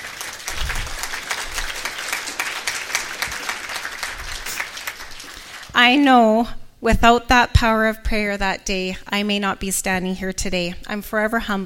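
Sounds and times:
audience applause: 0:00.0 - 0:05.8
speech: 0:05.8 - 0:11.6.

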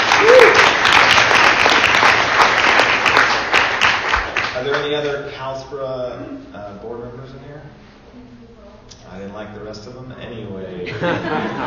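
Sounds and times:
audience applause: 0:00.0 - 0:05.1
speech: 0:04.9 - 0:08.5, 0:09.1 - 0:11.6
laughter: 0:10.8 - 0:11.6.

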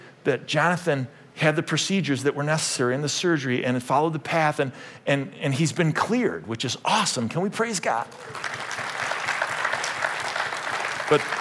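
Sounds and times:
speech: 0:00.2 - 0:08.6, 0:11.1 - 0:11.4
audience clapping: 0:08.0 - 0:11.4.

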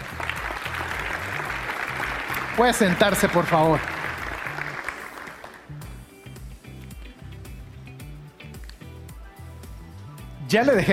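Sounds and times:
audience applause: 0:00.0 - 0:05.8
speech: 0:02.6 - 0:03.9, 0:10.5 - 0:10.9.

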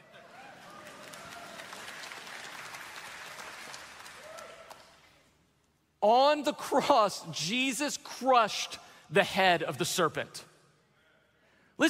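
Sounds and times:
audience clapping: 0:00.0 - 0:05.3
speech: 0:06.0 - 0:10.5.

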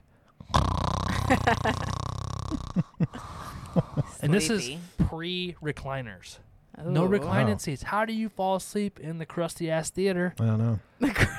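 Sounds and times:
voice imitating loud snoring: 0:00.4 - 0:03.5
speech: 0:01.3 - 0:01.9, 0:02.5 - 0:11.3.

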